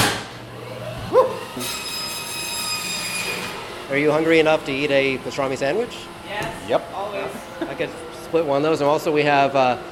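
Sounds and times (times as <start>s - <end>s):
bandsaw cutting meat and bone: 0.0s - 6.8s
speech: 1.6s - 1.9s, 3.9s - 9.9s.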